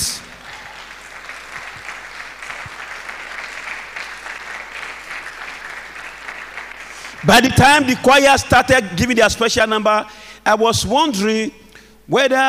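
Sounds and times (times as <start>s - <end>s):
audience clapping hands: 0.0s - 8.6s
speech: 7.2s - 12.4s.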